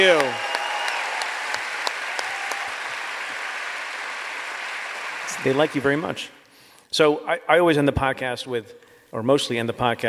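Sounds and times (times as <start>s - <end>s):
speech: 0.0s - 0.5s, 5.4s - 10.0s
audience applause: 0.0s - 6.3s.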